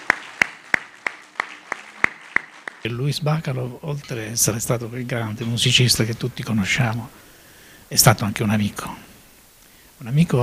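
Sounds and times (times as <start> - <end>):
orchestra members clapping for their concert audience: 0.0 - 3.7
speech: 2.8 - 7.3, 7.9 - 9.1, 10.0 - 10.4.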